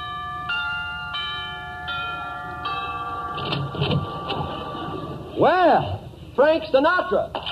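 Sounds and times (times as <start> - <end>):
doorbell chime: 0.0 - 5.2
clattering and rustling: 3.4 - 4.6
speech: 5.4 - 7.4.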